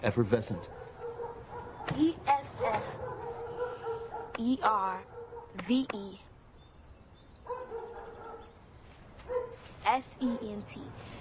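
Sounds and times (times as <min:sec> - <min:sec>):
speech: 0:00.0 - 0:00.9, 0:01.9 - 0:03.1, 0:04.4 - 0:06.3, 0:09.8 - 0:11.1
dog barking: 0:00.6 - 0:05.6, 0:07.4 - 0:08.5, 0:09.2 - 0:10.6.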